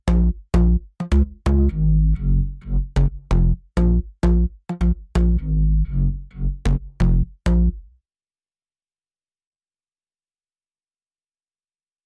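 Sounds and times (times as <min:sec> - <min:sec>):
bass: 0:00.0 - 0:08.0.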